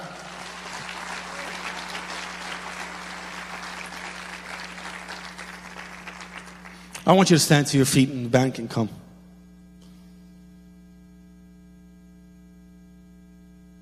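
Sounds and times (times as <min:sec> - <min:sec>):
audience applause: 0:00.0 - 0:07.3
speech: 0:07.1 - 0:09.1.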